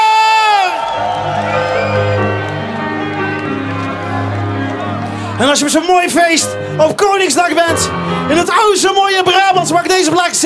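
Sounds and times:
big festival crowd roaring and cheering: 0.0 - 6.5
speech: 5.4 - 10.4.

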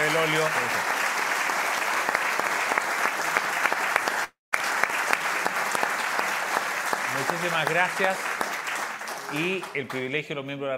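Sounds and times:
audience applause: 0.0 - 10.2
speech: 0.2 - 1.0, 7.4 - 8.3, 9.3 - 10.7.

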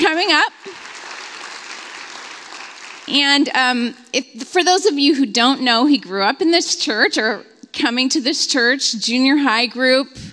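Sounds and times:
audience applause: 0.0 - 3.2
speech: 0.2 - 0.6, 3.1 - 10.3.

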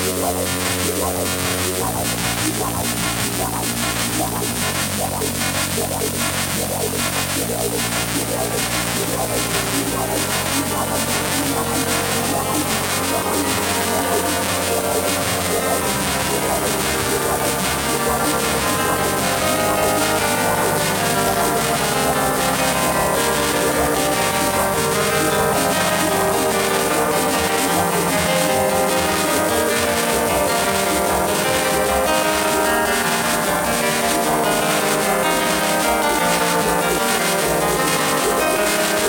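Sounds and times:
fast regular pulsing: 0.0 - 39.0
low droning radio notes: 0.0 - 39.0
strange radio signals during a nighttime ride: 0.0 - 39.0.

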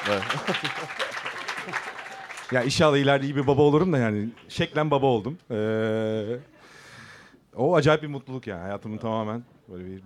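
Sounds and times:
laughter: 0.0 - 2.2
audience clapping: 0.0 - 4.7
speech: 0.1 - 1.9, 2.5 - 6.5, 7.6 - 10.0.

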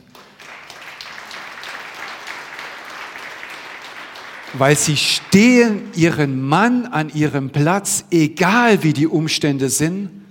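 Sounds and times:
audience applause: 0.0 - 5.8
speech: 4.5 - 10.2.

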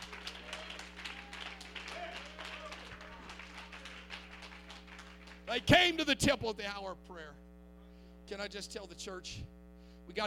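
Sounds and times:
audience clapping: 0.0 - 5.8
speech: 5.5 - 7.5, 8.3 - 10.2.

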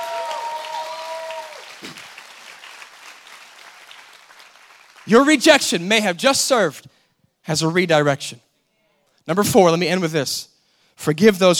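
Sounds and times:
audience clapping: 0.0 - 5.8
speech: 5.1 - 6.9, 7.5 - 8.5, 9.3 - 11.5.

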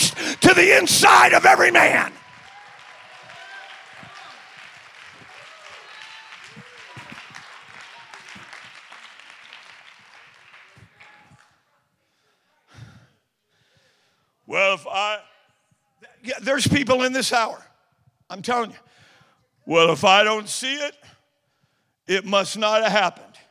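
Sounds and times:
crowd clapping: 0.0 - 11.6
speech: 0.6 - 2.2, 14.5 - 15.3, 16.2 - 17.7, 18.3 - 18.9, 19.7 - 21.1, 22.1 - 23.4.

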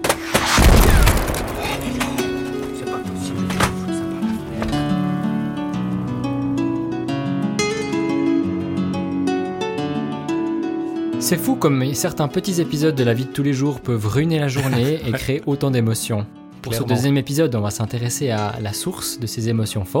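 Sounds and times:
printer being smashed: 0.0 - 4.9
music: 0.0 - 19.9
speech: 11.3 - 19.9
laughter: 14.5 - 15.4.

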